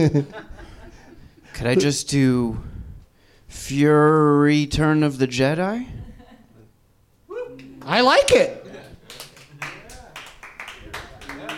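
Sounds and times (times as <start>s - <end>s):
speech: 0.0s - 0.5s, 1.6s - 2.7s, 3.5s - 6.0s, 7.9s - 8.6s
laughter: 0.0s - 1.2s, 8.4s - 9.6s
light polite golf claps: 8.7s - 11.5s.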